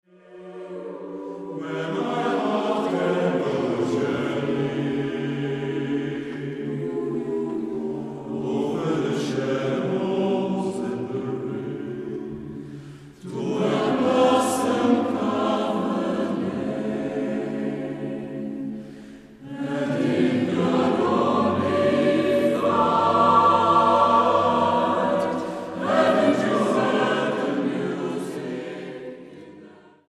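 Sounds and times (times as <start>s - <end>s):
SSATTB choir singing: 0.0s - 30.0s.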